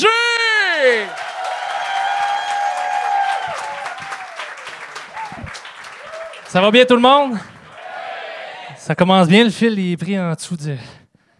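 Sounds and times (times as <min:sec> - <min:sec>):
whoops and cheering shouts: 0:00.5 - 0:06.4
crowd applause: 0:00.7 - 0:08.8
speech: 0:06.5 - 0:07.5, 0:08.9 - 0:11.0.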